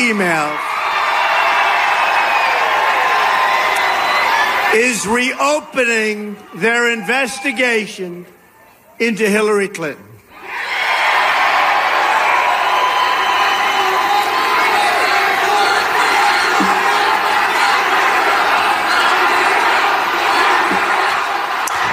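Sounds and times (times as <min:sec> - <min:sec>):
speech: 0:00.0 - 0:00.7, 0:04.7 - 0:08.4, 0:09.0 - 0:10.1
shouts and cheers: 0:00.0 - 0:08.0, 0:10.3 - 0:21.9
rally crowd of Trump supporters chanting in unison: 0:11.0 - 0:21.9.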